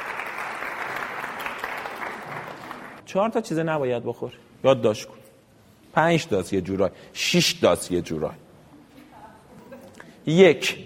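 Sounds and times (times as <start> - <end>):
audience clapping: 0.0 - 3.0
speech: 3.1 - 5.2, 6.0 - 8.4, 10.3 - 10.8.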